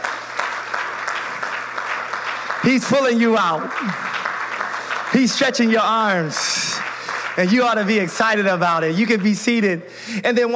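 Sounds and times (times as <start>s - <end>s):
audience clapping hands: 0.0s - 9.8s
speech: 2.6s - 4.1s, 5.1s - 6.8s, 7.4s - 10.5s.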